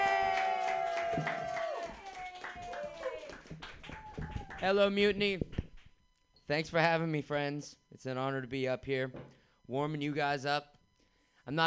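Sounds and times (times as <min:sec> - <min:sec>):
audience whoops and shouts: 0:00.0 - 0:04.6
audience applause at a comedy show: 0:00.0 - 0:04.8
speech: 0:04.6 - 0:05.5, 0:06.5 - 0:10.8, 0:11.5 - 0:11.6.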